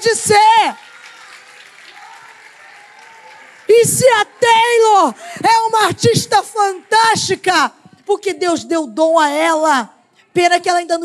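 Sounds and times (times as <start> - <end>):
audience applause in church: 0.0 - 5.2
speech: 3.9 - 11.0.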